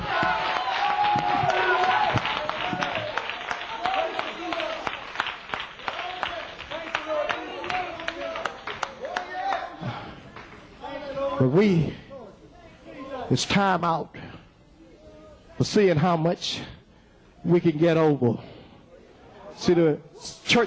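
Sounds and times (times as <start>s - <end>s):
audience hand clapping: 0.0s - 10.7s
speech: 11.5s - 12.0s, 13.3s - 14.2s, 15.6s - 16.8s, 17.4s - 18.5s, 19.6s - 20.6s.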